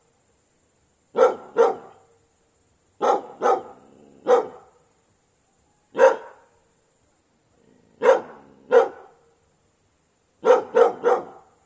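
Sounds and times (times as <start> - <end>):
dog barking in the countryside: 1.2 - 2.0, 3.0 - 4.8, 5.9 - 6.5, 8.0 - 9.2, 10.4 - 11.6.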